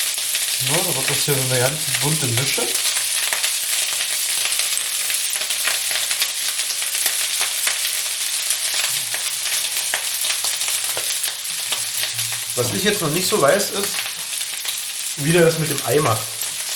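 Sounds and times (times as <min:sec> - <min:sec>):
vegetables sizzling while frying in a pan: 0:00.0 - 0:16.7
speech: 0:00.6 - 0:02.9, 0:12.6 - 0:14.1, 0:15.2 - 0:16.4.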